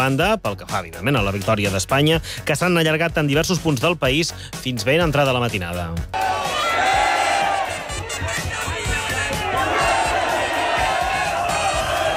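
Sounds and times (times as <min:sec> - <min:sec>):
speech: 0:00.0 - 0:06.4
thousands celebrating Spain's victory in Plaça Catalunya, Barcelona: 0:06.1 - 0:12.1.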